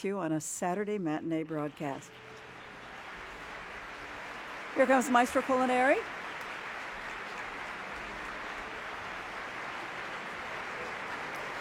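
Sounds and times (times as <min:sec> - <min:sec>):
speech: 0:00.0 - 0:02.3, 0:04.8 - 0:06.2
audience applause in opera house: 0:01.6 - 0:11.5.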